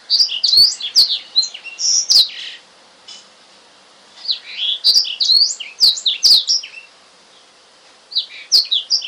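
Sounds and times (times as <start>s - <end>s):
Oriental magpie-robin singing: 0.0s - 2.6s, 4.2s - 7.5s, 8.1s - 9.0s.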